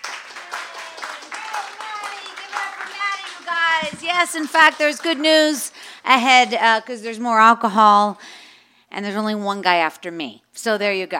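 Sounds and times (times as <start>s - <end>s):
round of applause: 0.0s - 6.6s
speech: 3.4s - 8.3s, 8.9s - 11.1s.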